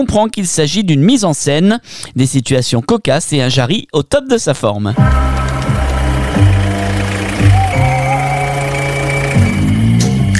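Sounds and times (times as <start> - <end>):
speech: 0.0 - 5.5
angle grinder running: 5.2 - 9.8.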